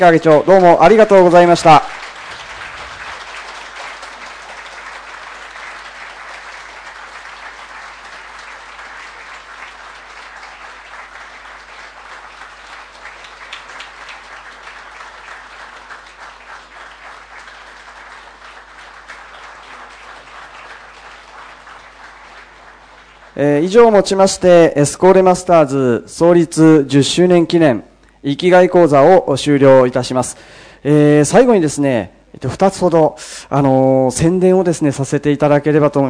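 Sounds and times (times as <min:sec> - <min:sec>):
speech: 0:00.0 - 0:02.0, 0:23.4 - 0:36.0
applause for departing speakers: 0:00.0 - 0:25.5.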